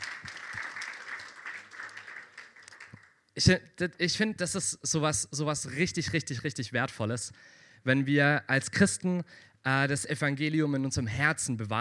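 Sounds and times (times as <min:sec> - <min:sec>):
crowd applauding: 0:00.0 - 0:03.2
speech: 0:03.4 - 0:11.8.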